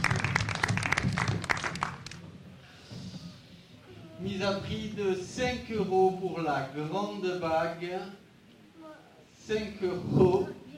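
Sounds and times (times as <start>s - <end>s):
burst of applause from a group: 0.0s - 2.2s
speech: 4.3s - 8.2s, 9.5s - 10.6s.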